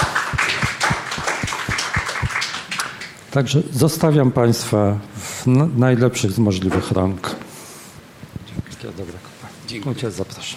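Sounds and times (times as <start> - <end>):
audience applause: 0.0 - 3.3
speech: 3.4 - 7.3, 9.0 - 10.5.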